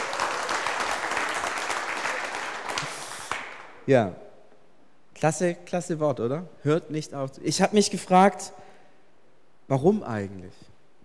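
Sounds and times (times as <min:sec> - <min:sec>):
audience applause: 0:00.0 - 0:03.8
speech: 0:03.9 - 0:04.2, 0:05.2 - 0:08.6, 0:09.7 - 0:10.7.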